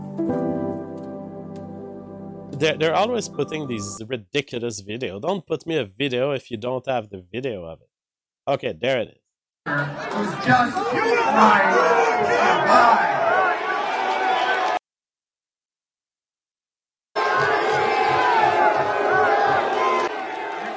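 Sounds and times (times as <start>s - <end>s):
speech: 2.6s - 7.9s, 8.5s - 13.1s
crowd booing and shouting: 9.7s - 14.8s, 17.2s - 20.7s.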